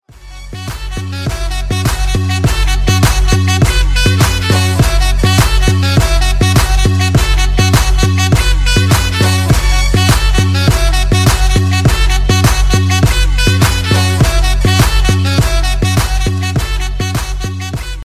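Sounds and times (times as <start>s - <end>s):
DJ horns ringtone: 0.1s - 18.0s.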